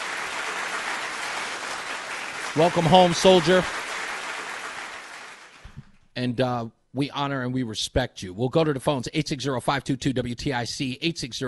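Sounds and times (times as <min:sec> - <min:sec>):
applause in studio: 0:00.0 - 0:05.9
speech: 0:02.6 - 0:03.8, 0:06.2 - 0:11.4.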